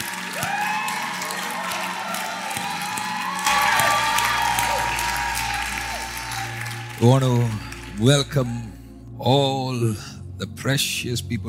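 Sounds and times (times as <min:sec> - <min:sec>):
cheers and whoops: 0:00.0 - 0:08.1
audience clapping hands: 0:00.0 - 0:08.8
speech: 0:07.0 - 0:11.4.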